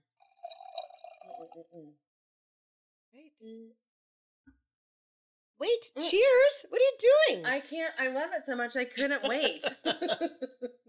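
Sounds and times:
drink being poured for tasting: 0.0s - 1.6s
speech: 1.6s - 2.1s, 3.1s - 4.6s, 5.6s - 10.8s
laughter: 9.0s - 10.8s.

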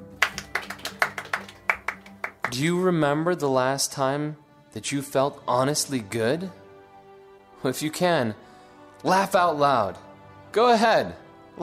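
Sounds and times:
audience clapping hands: 0.0s - 2.6s
speech: 2.5s - 6.6s, 7.6s - 11.6s.

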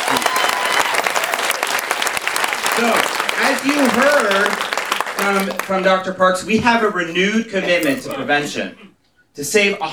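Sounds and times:
audience applause: 0.0s - 5.8s
speech: 2.8s - 9.9s.

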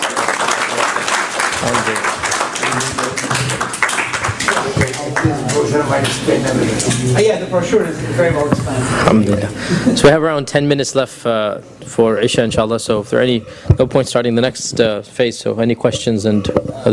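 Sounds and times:
audience applause: 0.0s - 5.9s
speech: 1.6s - 3.7s, 5.2s - 16.9s.

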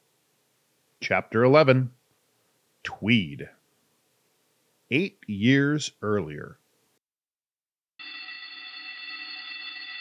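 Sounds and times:
speech: 1.0s - 2.0s, 2.8s - 3.6s, 4.9s - 6.6s
school bell signaling third period at Smiley Junior High: 8.0s - 10.0s.

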